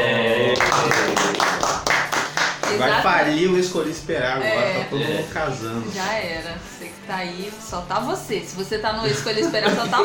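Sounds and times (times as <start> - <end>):
short vocal sound: 0.0 - 0.8
rhythmic hand clapping: 0.6 - 3.1
speech: 2.8 - 10.0
laughter: 9.0 - 10.0.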